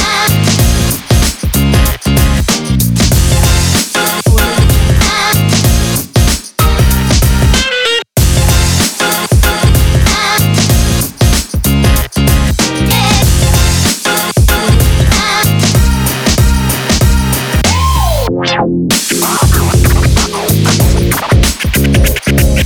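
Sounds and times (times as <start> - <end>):
upbeat summer hip hop music: 0.0 - 18.3, 18.9 - 22.6.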